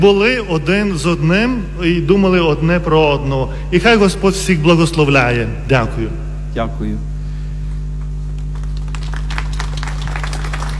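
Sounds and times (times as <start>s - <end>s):
speech: 0.0s - 7.1s
constant low electrical hum: 0.0s - 10.7s
audience applause: 8.0s - 10.7s.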